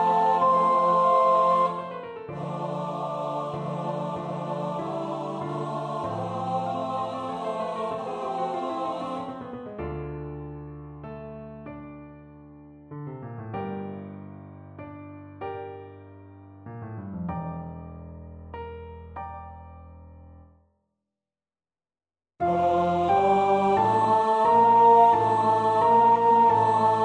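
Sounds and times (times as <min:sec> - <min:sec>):
soprano singing: 0:00.0 - 0:09.6, 0:22.4 - 0:27.0.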